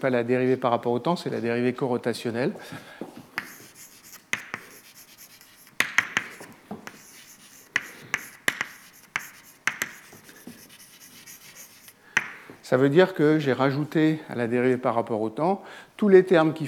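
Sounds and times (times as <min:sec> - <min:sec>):
speech: 0:00.0 - 0:03.1, 0:12.7 - 0:16.6
writing on a board during a lecture: 0:03.4 - 0:12.4.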